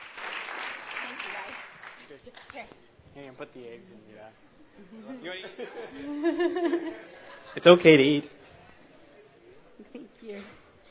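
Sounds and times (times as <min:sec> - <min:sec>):
audience round of applause: 0:00.0 - 0:02.1
speech: 0:02.1 - 0:08.4, 0:09.8 - 0:10.6
laughter: 0:04.8 - 0:07.9.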